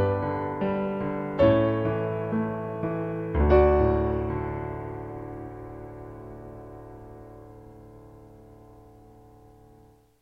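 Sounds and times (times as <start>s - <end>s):
piano canon: 0.0s - 10.2s.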